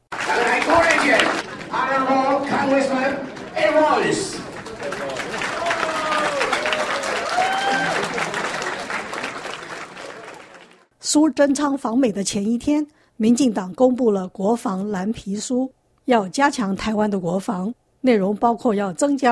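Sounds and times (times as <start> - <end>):
over 300 DPP supporters clapping and cheering: 0.0 - 10.9
speech: 0.3 - 6.4, 11.1 - 19.2.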